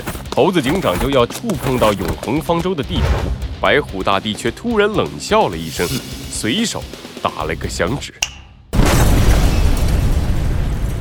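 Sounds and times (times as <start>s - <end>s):
speech: 0.4s - 8.4s
explosion: 8.7s - 11.0s.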